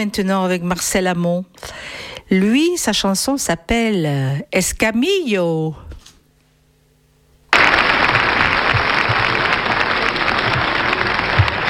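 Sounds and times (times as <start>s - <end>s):
speech: 0.0s - 5.8s
audience applause: 7.5s - 11.6s.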